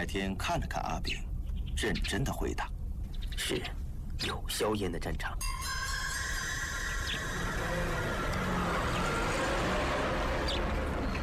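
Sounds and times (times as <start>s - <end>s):
speech: 0.0s - 2.7s, 3.4s - 5.7s
truck driving past on a road: 5.9s - 11.2s.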